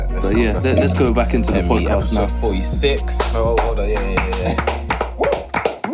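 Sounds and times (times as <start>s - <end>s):
speech: 0.2s - 4.8s
hand claps to sync the recording: 3.0s - 5.9s.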